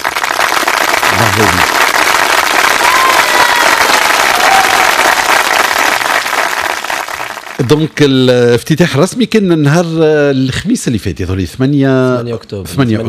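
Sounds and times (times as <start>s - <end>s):
crowd applause: 0.0s - 7.9s
speech: 1.2s - 1.8s, 7.6s - 13.0s.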